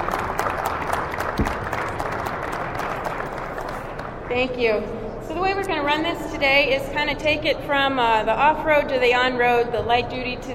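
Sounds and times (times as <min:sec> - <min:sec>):
crowd applauding: 0:00.0 - 0:04.3
speech: 0:04.4 - 0:10.5.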